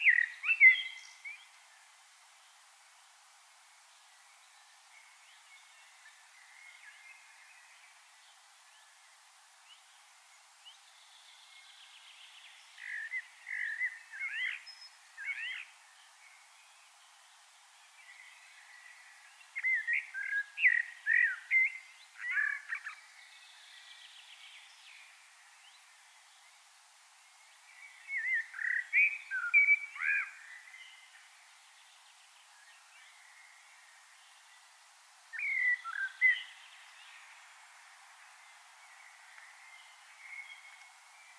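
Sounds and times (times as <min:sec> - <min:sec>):
common blackbird singing: 0:00.0 - 0:01.5, 0:11.1 - 0:15.7, 0:19.6 - 0:25.0, 0:27.8 - 0:31.1, 0:35.3 - 0:37.2
background hiss: 0:00.0 - 0:41.3.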